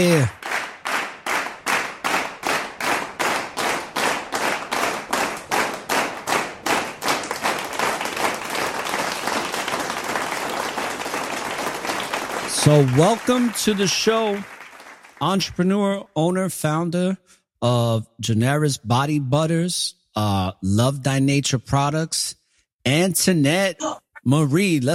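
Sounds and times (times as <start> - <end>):
speech: 0.0 - 0.5, 12.7 - 14.5, 15.2 - 24.9
audience clapping for a guest welcomed onto a show: 0.0 - 15.6.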